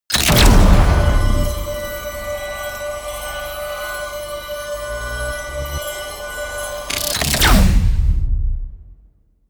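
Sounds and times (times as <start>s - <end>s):
promo synth pad: 0.3s - 8.3s.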